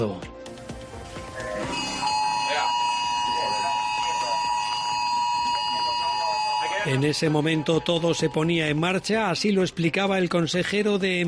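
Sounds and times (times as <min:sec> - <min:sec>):
speech: 0:00.0 - 0:00.4, 0:06.8 - 0:11.2
S-Alert emergency mobile phone alert tone: 0:01.7 - 0:07.0.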